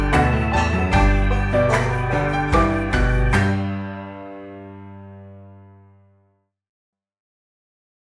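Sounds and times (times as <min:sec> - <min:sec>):
victory march: 0:00.0 - 0:05.0.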